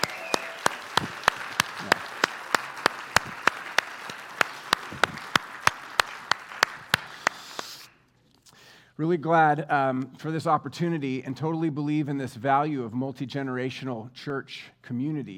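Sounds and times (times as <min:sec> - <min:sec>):
church congregation clapping to welcome young folks: 0:00.0 - 0:07.9
speech: 0:09.0 - 0:15.3.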